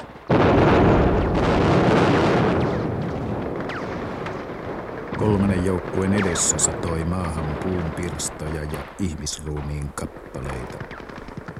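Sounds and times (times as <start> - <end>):
bridge exploding: 0.0 - 9.0
speech: 5.2 - 11.2.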